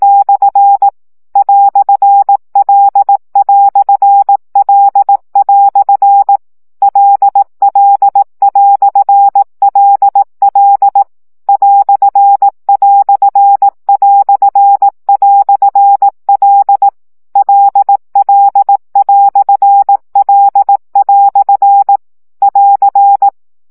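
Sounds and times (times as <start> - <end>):
Morse code practice beeps at 15 baud: 0.0 - 23.4.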